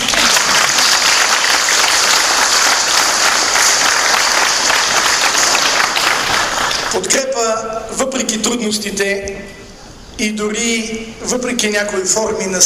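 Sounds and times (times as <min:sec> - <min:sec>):
audience applause: 0:00.0 - 0:07.0
speech: 0:07.4 - 0:09.6, 0:10.2 - 0:12.6.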